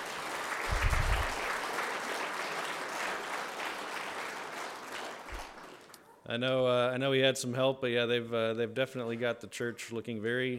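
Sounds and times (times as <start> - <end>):
audience applause: 0.0 - 6.0
speech: 6.3 - 10.5.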